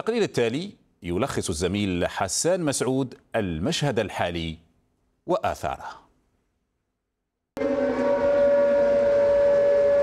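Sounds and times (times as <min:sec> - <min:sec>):
speech: 0:00.0 - 0:04.6, 0:05.3 - 0:06.0
air raid warning siren: 0:07.6 - 0:10.0.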